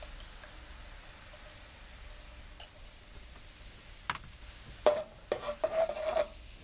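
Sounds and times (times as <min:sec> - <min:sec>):
utensil scraping a pan while stirring coconut cream and cane sugar: 0:04.8 - 0:06.6.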